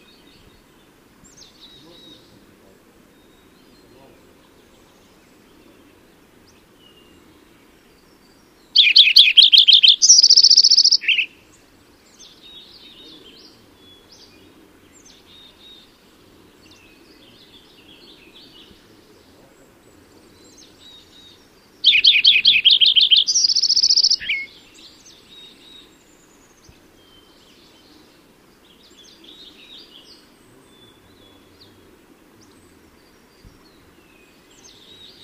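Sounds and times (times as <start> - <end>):
Lincoln's Sparrow singing: 0.0 - 35.2.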